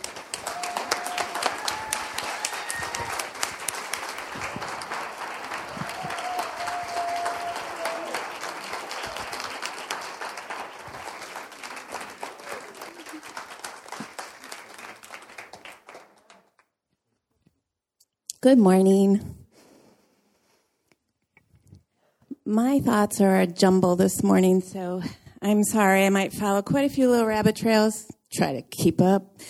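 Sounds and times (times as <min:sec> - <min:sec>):
audience applause welcoming guests: 0:00.0 - 0:16.6
speech: 0:18.4 - 0:19.3, 0:22.5 - 0:29.4.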